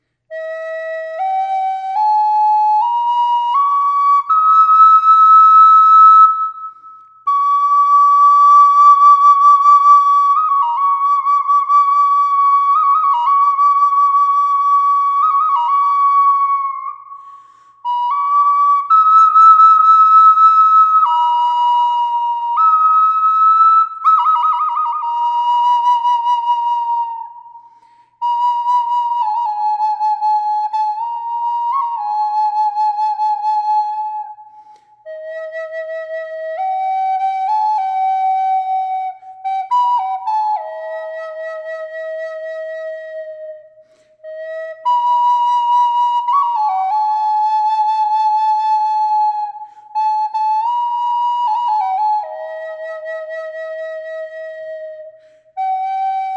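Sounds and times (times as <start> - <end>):
flute with reverb: 0.0 - 56.3.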